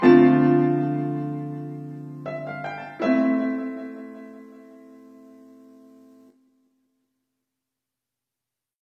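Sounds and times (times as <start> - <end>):
piano: 0.0 - 6.8.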